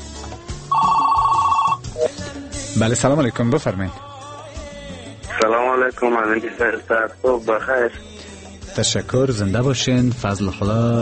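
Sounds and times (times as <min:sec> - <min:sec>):
telephone ringing for a listener calling in to a radio show: 0:00.7 - 0:02.1
speech: 0:02.8 - 0:04.1, 0:05.8 - 0:08.1, 0:08.8 - 0:11.0.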